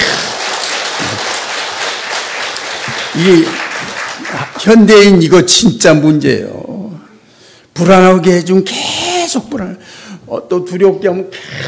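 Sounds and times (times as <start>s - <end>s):
audience applause: 0.0s - 4.9s
speech: 3.2s - 3.6s, 4.3s - 6.6s, 7.8s - 11.6s.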